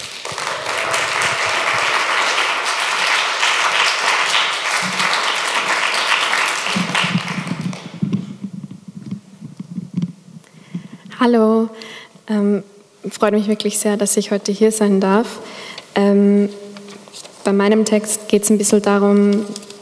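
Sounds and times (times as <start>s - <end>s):
audience applause for a performer: 0.0s - 8.0s
speech: 11.2s - 16.6s, 17.5s - 19.7s.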